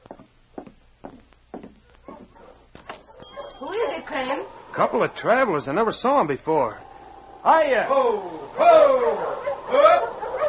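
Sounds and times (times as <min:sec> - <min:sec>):
sled dog team arriving: 0:03.2 - 0:10.4
speech: 0:04.2 - 0:10.1.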